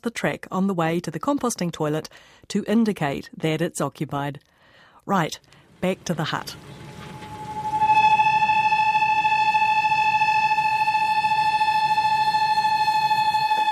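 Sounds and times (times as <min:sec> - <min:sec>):
speech: 0:00.0 - 0:04.5, 0:05.1 - 0:06.8
kettle whistling on the stove: 0:06.2 - 0:13.6.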